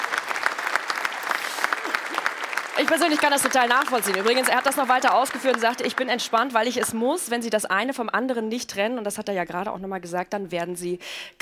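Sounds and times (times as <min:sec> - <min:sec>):
studio audience applause: 0:00.0 - 0:07.2
speech: 0:02.8 - 0:11.4.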